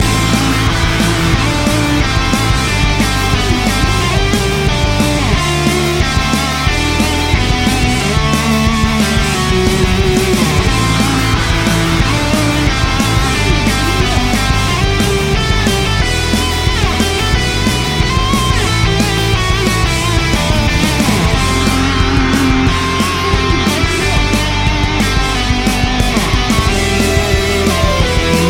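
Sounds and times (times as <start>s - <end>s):
game title theme music: 0.0s - 28.4s.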